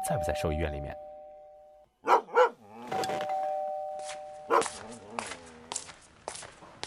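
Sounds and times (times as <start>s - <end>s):
doorbell chiming: 0.0s - 1.8s, 3.0s - 4.6s
speech: 0.1s - 1.1s
dog barking: 2.0s - 2.6s, 4.5s - 5.3s.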